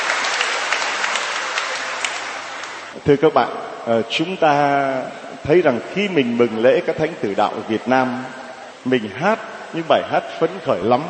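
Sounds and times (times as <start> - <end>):
church congregation applauding at the feast of the Vietnamese Martyrs: 0.0 - 3.0
speech: 3.0 - 11.0.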